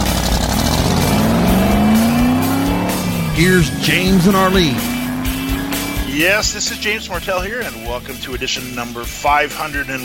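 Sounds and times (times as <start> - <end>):
tire squeal: 0.0 - 6.9
sports car engine revving and accelerating: 0.0 - 8.8
speech: 3.4 - 5.0, 6.2 - 10.0.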